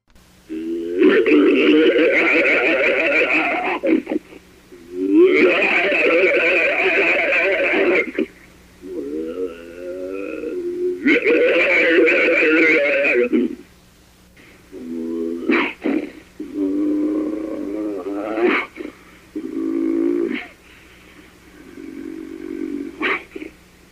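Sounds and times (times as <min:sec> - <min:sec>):
snarls and growls of unknown creature: 0:00.5 - 0:04.2, 0:04.8 - 0:13.6, 0:14.7 - 0:20.6, 0:21.6 - 0:23.5
laughter: 0:01.0 - 0:04.4, 0:05.4 - 0:08.1.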